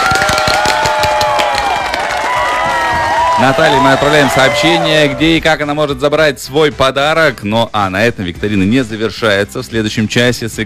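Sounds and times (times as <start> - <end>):
audience applause and cheering: 0.0 - 5.5
speech: 3.4 - 10.6.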